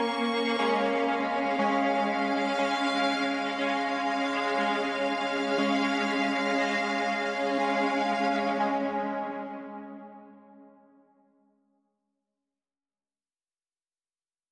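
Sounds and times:
strings: 0.0s - 10.6s.

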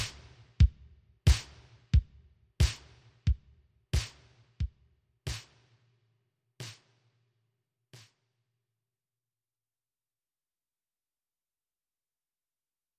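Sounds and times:
drums: 0.0s - 5.9s, 6.6s - 7.2s, 8.0s - 8.2s.

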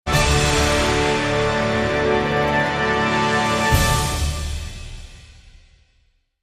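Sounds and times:
American fanfare: 0.1s - 4.9s.

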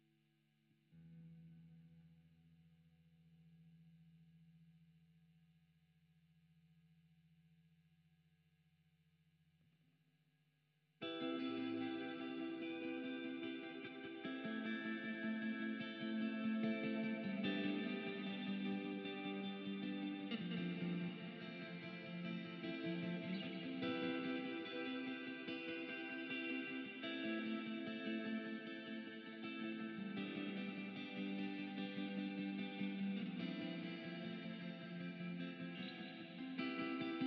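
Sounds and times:
main guitar: 0.9s - 3.0s, 11.0s - 37.2s.

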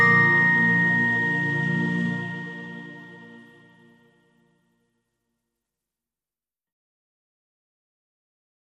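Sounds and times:
Christmas carol melody on carillon: 0.0s - 3.7s.

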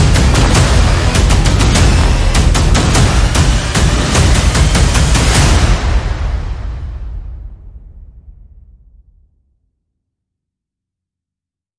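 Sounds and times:
percussion: 0.0s - 7.5s
sound effects: 0.0s - 8.7s
bass: 0.0s - 9.0s.

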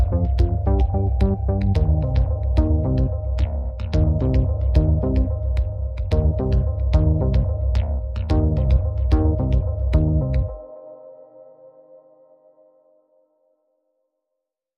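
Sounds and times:
pads: 0.0s - 10.9s.

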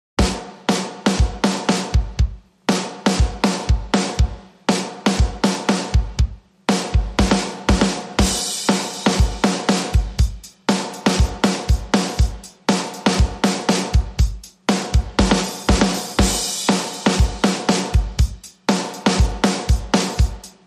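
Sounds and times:
drums: 0.2s - 20.6s.

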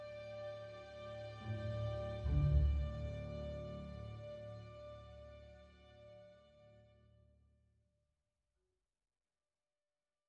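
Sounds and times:
strings: 0.0s - 6.5s.

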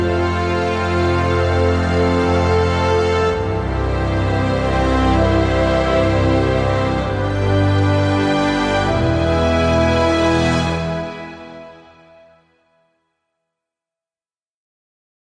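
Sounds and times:
bass: 0.0s - 12.2s
strings: 0.0s - 12.7s.

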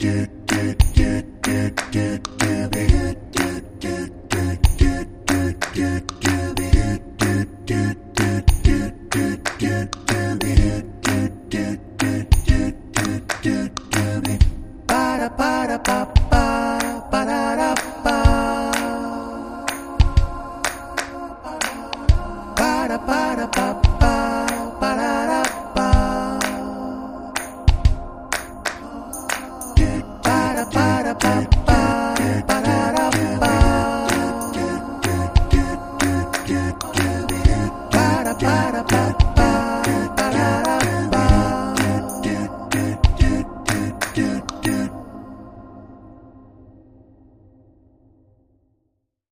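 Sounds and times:
vocals: 0.0s - 47.7s
drums: 0.8s - 1.6s, 2.4s - 3.5s, 4.3s - 5.5s, 8.4s - 11.2s, 12.3s - 14.6s, 16.1s - 16.6s, 20.0s - 21.1s, 21.9s - 22.4s, 23.6s - 24.6s, 27.5s - 28.8s, 29.8s - 34.3s, 35.0s - 44.8s.

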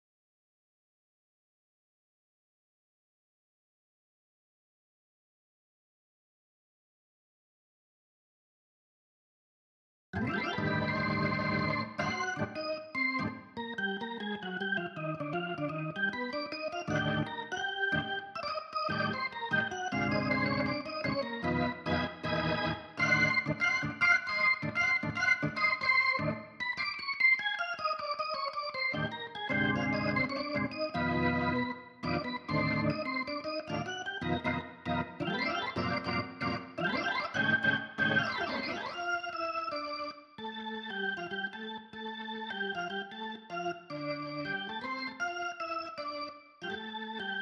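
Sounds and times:
organ: 10.2s - 47.4s.

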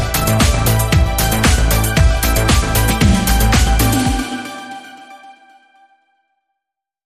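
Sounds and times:
rhythmic space synths: 0.2s - 5.1s.

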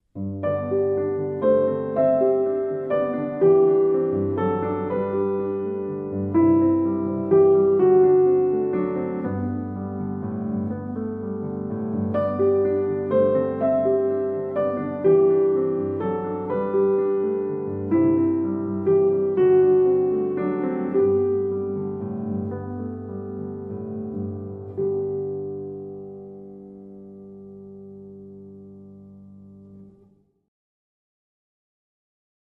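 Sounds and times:
solo piano: 0.0s - 30.4s.

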